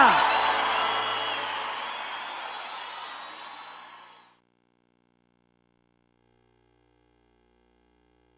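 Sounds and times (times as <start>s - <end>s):
crowd applause and cheering in Goiânia: 0.0s - 4.3s.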